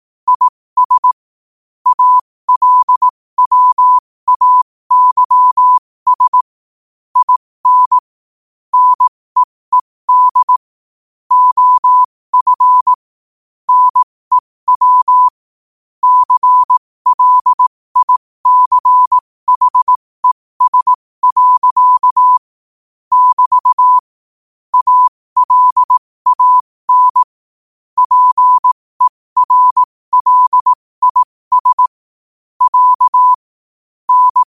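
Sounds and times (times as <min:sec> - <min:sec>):
morse code at 5 wpm: 0:00.3 - 0:01.2, 0:01.8 - 0:06.5, 0:07.2 - 0:08.0, 0:08.7 - 0:10.6, 0:11.3 - 0:13.0, 0:13.7 - 0:15.4, 0:16.0 - 0:22.5, 0:23.1 - 0:24.1, 0:24.7 - 0:27.4, 0:28.0 - 0:32.0, 0:32.6 - 0:33.5, 0:34.1 - 0:34.5.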